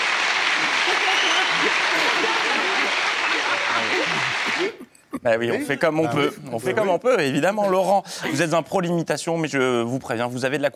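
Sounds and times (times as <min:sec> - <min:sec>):
crowd applause: 0:00.0 - 0:04.8
laughter: 0:00.5 - 0:06.7
speech: 0:04.6 - 0:10.7.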